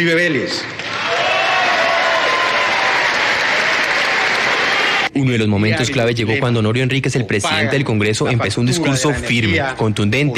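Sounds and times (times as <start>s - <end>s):
speech: 0.0s - 0.8s, 5.2s - 10.3s
applause in an assembly hall: 0.2s - 5.1s.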